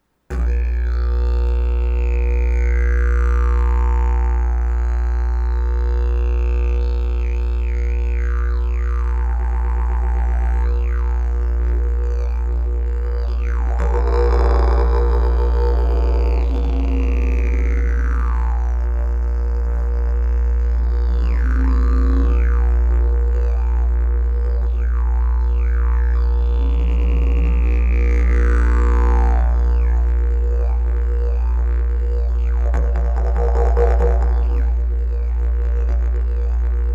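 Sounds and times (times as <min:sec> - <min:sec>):
didgeridoo: 0:00.3 - 0:36.9.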